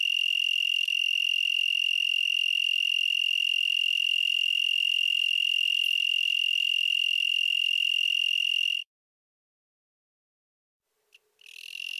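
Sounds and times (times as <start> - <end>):
broad-winged tree cricket Oecanthus latipennis trilling: 0.0 - 8.9, 11.4 - 11.9.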